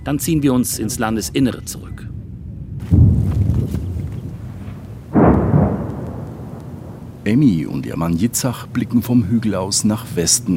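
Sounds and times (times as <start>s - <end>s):
speech: 0.1s - 2.1s, 7.3s - 10.5s
heavy booming explosions: 2.8s - 8.3s.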